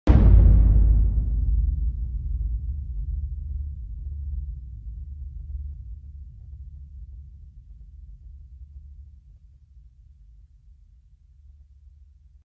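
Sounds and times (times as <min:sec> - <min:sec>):
boom: 0:00.1 - 0:07.2.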